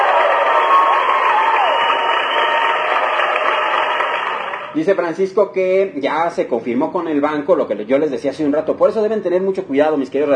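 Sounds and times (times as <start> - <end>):
applause sound effect: 0.0 - 4.8
speech: 4.8 - 10.3.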